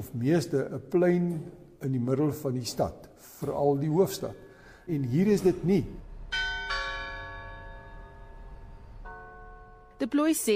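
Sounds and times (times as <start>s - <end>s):
speech: 0.0s - 6.0s, 10.1s - 10.5s
clock-tower bell striking in Pretoria, South Africa: 5.2s - 10.5s.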